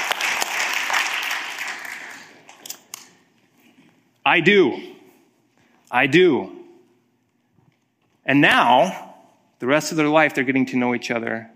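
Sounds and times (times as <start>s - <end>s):
audience applause: 0.0s - 2.5s
speech: 4.3s - 4.9s, 5.9s - 6.6s, 8.3s - 9.0s, 9.6s - 11.5s.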